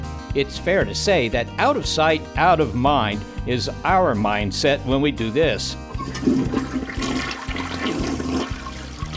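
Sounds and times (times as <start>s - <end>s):
speech: 0.3s - 6.9s
toilet flushing: 5.9s - 9.1s.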